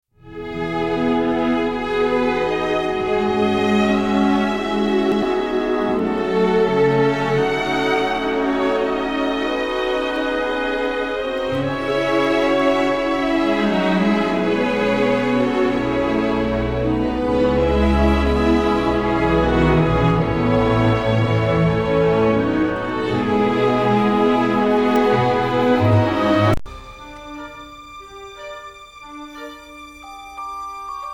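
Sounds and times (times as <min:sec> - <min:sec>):
film music: 0:00.2 - 0:31.1.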